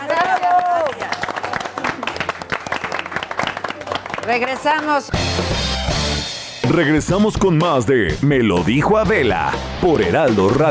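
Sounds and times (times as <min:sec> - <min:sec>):
applause: 0:00.0 - 0:05.2
speech: 0:04.2 - 0:05.6, 0:06.7 - 0:10.6.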